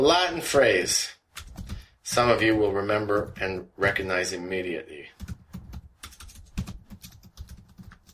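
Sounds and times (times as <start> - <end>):
speech: 0.0 - 1.2, 2.1 - 5.3
typing on a computer keyboard: 1.4 - 3.5, 5.2 - 8.1.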